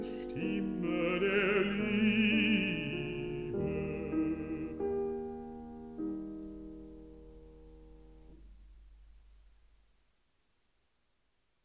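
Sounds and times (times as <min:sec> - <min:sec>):
person singing: 0:00.0 - 0:05.0
piano: 0:00.0 - 0:10.0.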